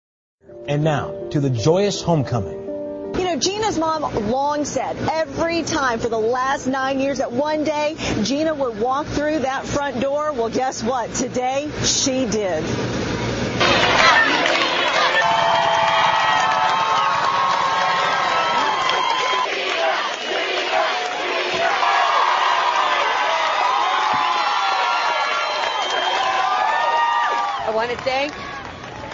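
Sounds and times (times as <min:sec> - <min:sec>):
speech: 0:00.7 - 0:02.6, 0:03.3 - 0:13.1, 0:27.8 - 0:28.5
crowd of onlookers cheering: 0:13.6 - 0:29.1.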